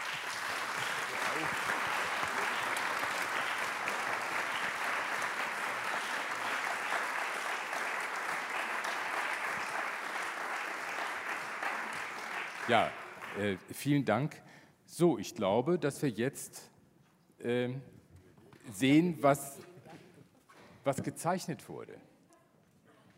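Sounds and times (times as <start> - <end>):
audience applause: 0.0 - 13.7
speech: 12.7 - 16.7, 17.4 - 17.9, 18.6 - 19.7, 20.8 - 22.1.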